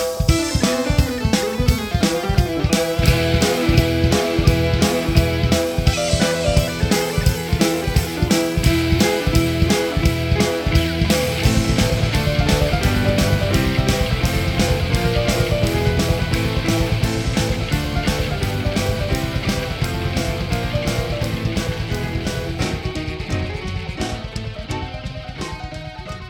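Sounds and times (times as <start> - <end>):
prelude: 0.1 - 26.2.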